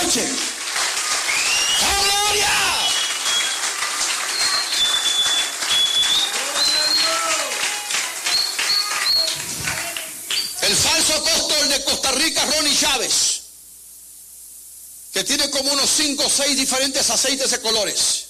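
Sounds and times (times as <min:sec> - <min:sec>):
crowd applause: 0:00.0 - 0:10.6
shrill whistles: 0:01.2 - 0:09.5, 0:10.3 - 0:10.6
speech: 0:11.2 - 0:13.3, 0:15.2 - 0:18.2.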